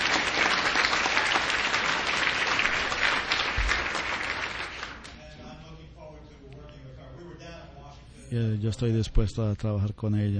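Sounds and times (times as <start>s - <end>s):
audience applause: 0.0s - 5.1s
speech: 8.3s - 10.3s.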